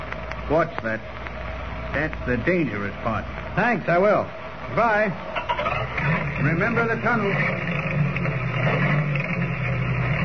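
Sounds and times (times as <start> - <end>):
speech: 0.5 - 1.2, 1.9 - 8.7
ancient car motor chugging laboriously up the mountain: 5.3 - 10.2.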